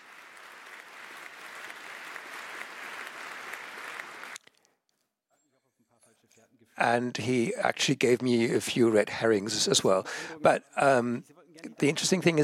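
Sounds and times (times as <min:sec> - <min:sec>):
audience applause: 0:00.0 - 0:04.4
speech: 0:06.8 - 0:12.4.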